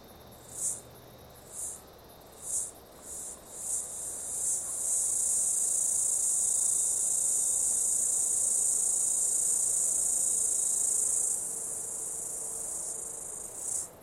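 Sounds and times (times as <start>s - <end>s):
Australian cicadas and various Australian insects calling: 0.1s - 13.9s.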